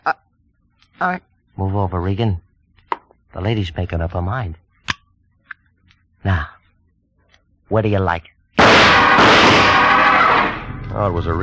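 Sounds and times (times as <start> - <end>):
speech: 0.0 - 0.2, 1.0 - 2.4, 3.3 - 4.6, 6.2 - 6.6, 7.7 - 9.7, 11.0 - 11.4
gunshots: 8.6 - 10.7.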